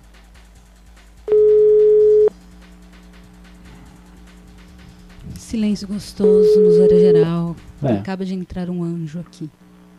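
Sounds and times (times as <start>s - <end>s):
telephone line beep while a call is being placed: 1.3s - 2.3s, 6.3s - 7.3s
quiet humming telephone line: 1.3s - 2.4s, 5.6s - 7.6s
speech: 5.5s - 9.6s.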